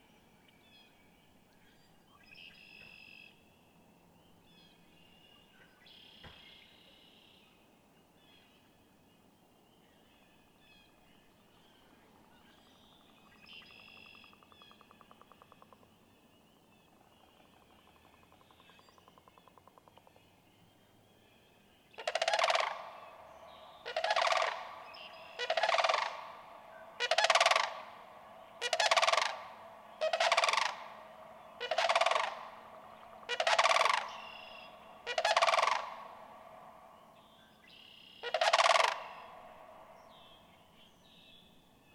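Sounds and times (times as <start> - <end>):
bird chirps: 0.0 - 41.9
sandhill crane rattling trumpeting calls: 22.0 - 36.9, 38.2 - 40.0.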